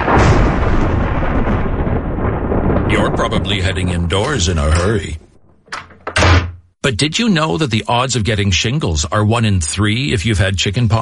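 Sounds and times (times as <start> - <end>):
thunder: 0.0 - 6.4
speech: 3.2 - 5.2, 6.9 - 11.0.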